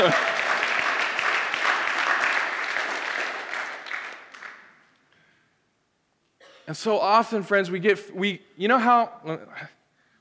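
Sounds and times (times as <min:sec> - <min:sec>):
speech: 0:00.0 - 0:00.4, 0:06.7 - 0:09.8
audience applause: 0:00.0 - 0:04.8.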